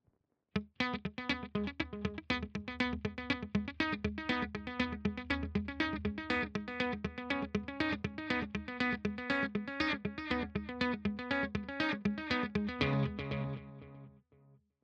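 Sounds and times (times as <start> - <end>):
riff with dual delay: 0.6 - 14.0.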